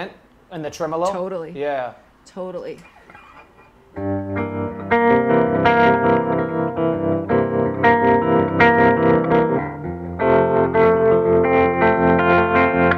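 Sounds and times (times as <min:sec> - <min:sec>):
speech: 0:00.0 - 0:03.2
slightly crunchy electric guitar chords through spring reverb and tremolo: 0:03.5 - 0:12.9.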